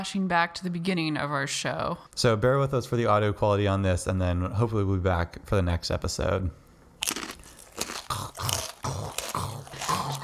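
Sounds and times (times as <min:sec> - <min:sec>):
speech: 0:00.0 - 0:07.2
person crunching granola while eating: 0:07.0 - 0:10.2.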